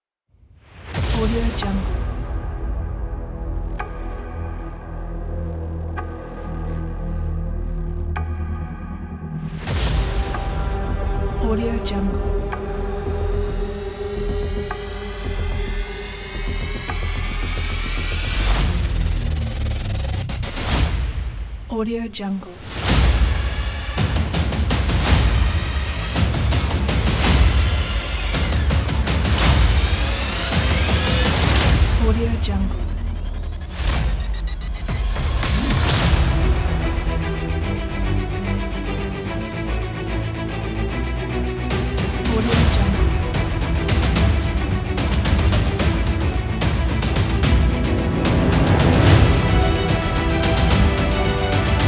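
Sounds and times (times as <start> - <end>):
hybrid epic trailer music: 0.5 - 51.8.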